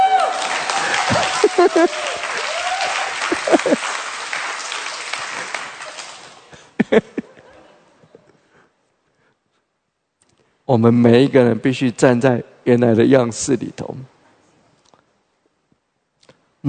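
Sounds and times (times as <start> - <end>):
audience applause: 0.0 - 6.8
laughter: 0.7 - 4.1, 5.3 - 8.4
speech: 1.6 - 2.1, 10.7 - 14.1.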